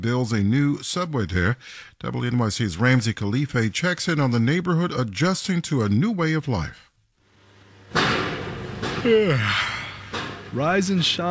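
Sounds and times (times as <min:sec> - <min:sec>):
speech: 0:00.0 - 0:06.9, 0:09.0 - 0:09.7, 0:10.5 - 0:11.2
heavy slam: 0:07.9 - 0:10.7.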